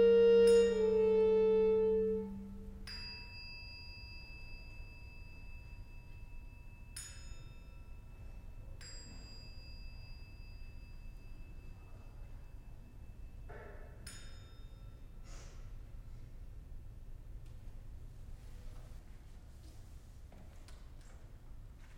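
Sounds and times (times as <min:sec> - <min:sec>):
horn: 0:00.0 - 0:02.8.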